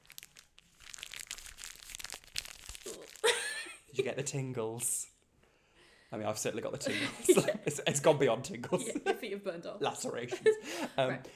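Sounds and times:
close-miked ASMR crinkling while shoes are taken off: 0:00.0 - 0:03.5
speech: 0:04.0 - 0:05.1, 0:06.1 - 0:11.3.

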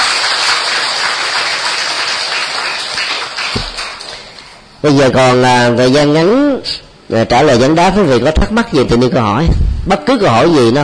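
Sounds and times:
crowd applauding: 0:00.0 - 0:04.6
speech: 0:04.8 - 0:10.8.

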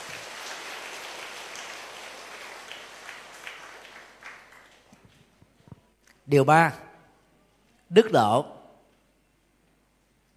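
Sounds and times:
audience applause: 0:00.0 - 0:05.4
speech: 0:06.3 - 0:06.8, 0:07.9 - 0:08.6.

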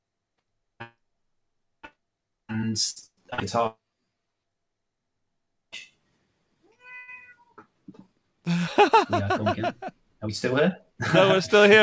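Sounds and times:
speech: 0:02.5 - 0:03.8, 0:09.0 - 0:11.8
cat meowing: 0:06.6 - 0:07.6
laughter: 0:08.5 - 0:09.9, 0:11.0 - 0:11.8.

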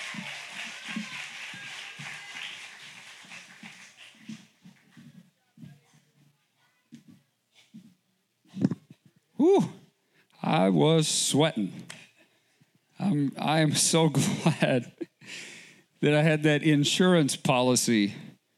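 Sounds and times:
audience applause: 0:00.0 - 0:04.6
speech: 0:09.4 - 0:09.8, 0:10.5 - 0:12.0, 0:13.1 - 0:15.4, 0:16.0 - 0:18.3.

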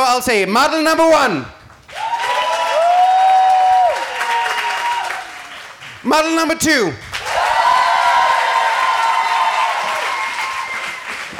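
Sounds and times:
speech: 0:00.2 - 0:01.6, 0:06.0 - 0:07.1
audience clapping: 0:01.7 - 0:11.3.

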